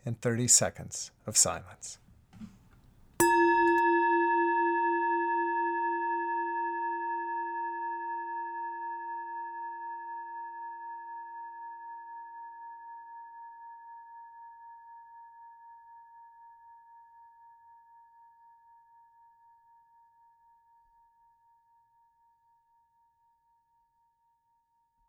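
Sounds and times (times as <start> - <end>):
speech: 0.1 - 2.5
chime: 3.2 - 13.4.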